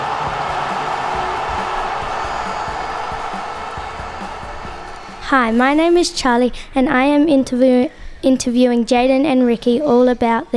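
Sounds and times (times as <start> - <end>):
crowd cheering wildly: 0.0 - 5.6
speech: 5.3 - 10.5.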